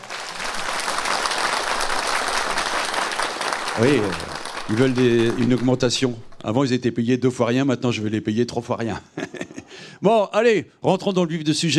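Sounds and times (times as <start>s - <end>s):
audience applause: 0.0s - 6.5s
speech: 3.8s - 9.2s, 10.0s - 11.7s
laughter: 9.0s - 9.8s.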